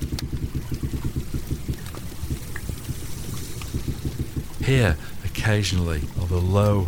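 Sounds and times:
underwater clicks: 0.0 - 6.8
speech: 4.7 - 6.8.

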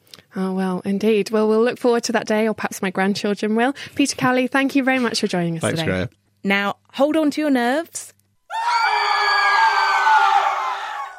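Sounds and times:
speech: 0.4 - 9.4
people screaming: 8.5 - 11.1.

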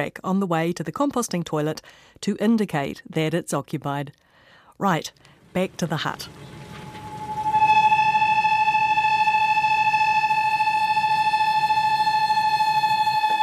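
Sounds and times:
speech: 0.0 - 4.2, 4.8 - 6.6
kettle whistling on a stove: 5.3 - 13.4
low murmuring rumble: 5.3 - 13.4.

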